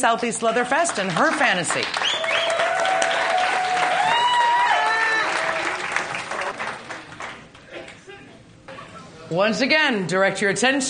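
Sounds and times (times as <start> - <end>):
speech: 0.0 - 2.5, 9.3 - 10.8
audience applause: 0.6 - 7.6
whoops and high cheers: 2.0 - 6.0.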